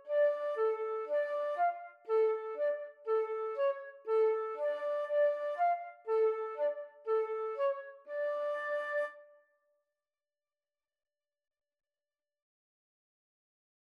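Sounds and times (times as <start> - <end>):
flute in a bulgarish karaoke track: 0.0 - 9.4.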